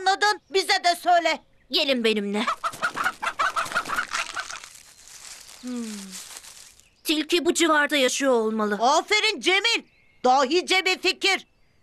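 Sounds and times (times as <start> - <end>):
speech: 0.1 - 2.7, 5.6 - 6.3, 7.1 - 11.5
chickens clucking: 2.4 - 5.2.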